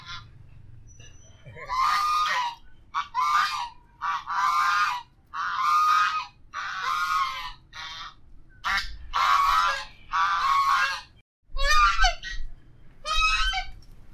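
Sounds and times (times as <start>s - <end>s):
goose honking: 1.5s - 12.4s.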